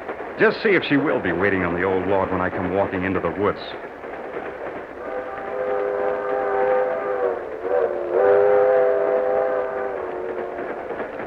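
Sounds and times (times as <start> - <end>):
low rumble of train moving along its tracks: 0.0 - 11.2
speech: 0.4 - 4.0
long steady train horn: 5.0 - 10.8.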